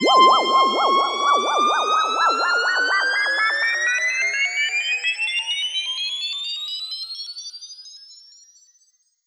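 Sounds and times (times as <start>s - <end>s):
uplifter sound effect: 0.0s - 5.2s.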